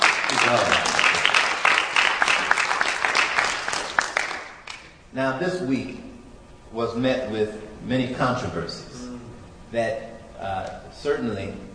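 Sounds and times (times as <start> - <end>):
crowd applauding: 0.0 - 4.9
speech: 0.4 - 0.9, 5.2 - 6.1, 6.7 - 11.6.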